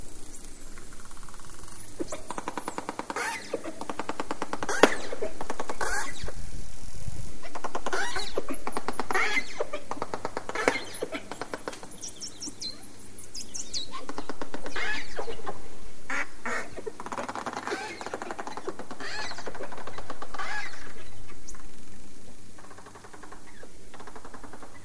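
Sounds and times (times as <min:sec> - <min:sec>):
dolphin: 0:01.3 - 0:04.0, 0:04.7 - 0:06.3, 0:07.4 - 0:13.0, 0:13.8 - 0:21.5.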